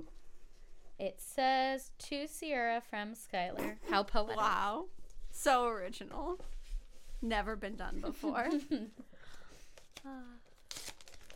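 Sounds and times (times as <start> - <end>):
speech: 1.0 - 6.6, 7.2 - 9.1, 10.0 - 10.4
faint crinkling of wrapping paper: 8.0 - 11.3
wrapping paper torn off a Christmas gift: 9.8 - 11.3.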